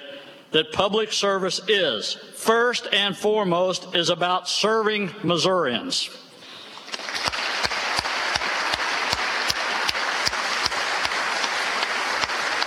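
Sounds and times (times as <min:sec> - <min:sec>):
speech: 0:00.5 - 0:06.2
bipartisan applause in legislative chamber: 0:06.7 - 0:12.6.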